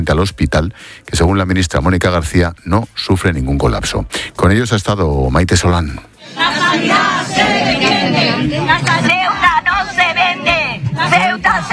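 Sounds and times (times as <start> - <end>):
speech: 0.0 - 7.5
protest crowd shouting outside a hospital: 6.2 - 11.7.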